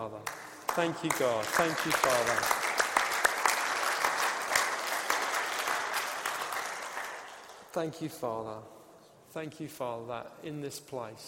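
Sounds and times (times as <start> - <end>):
speech: 0.1 - 2.6, 7.8 - 11.2
audience applause: 0.3 - 7.7.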